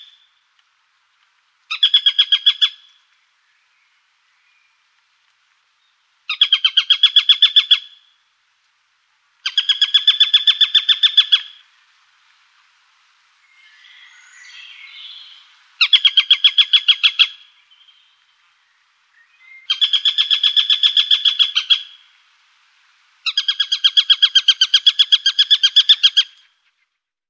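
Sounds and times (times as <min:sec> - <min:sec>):
Eurasian sparrowhawk shrill calls: 0:01.7 - 0:03.0, 0:06.3 - 0:08.2, 0:09.4 - 0:11.7, 0:14.6 - 0:18.1, 0:19.6 - 0:22.2, 0:23.2 - 0:26.8.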